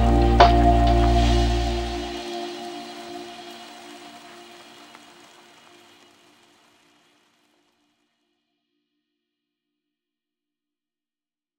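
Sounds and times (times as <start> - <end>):
lofi music: 0.0 - 4.9.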